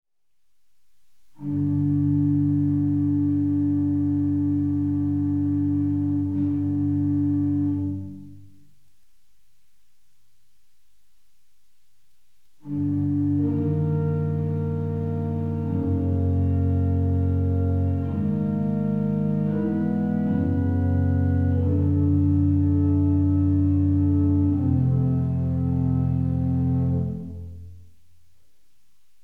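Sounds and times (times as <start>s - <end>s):
organ prelude: 1.4s - 8.4s, 12.6s - 27.7s.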